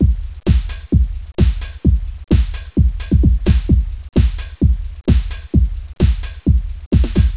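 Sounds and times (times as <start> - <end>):
music: 0.0 - 7.3.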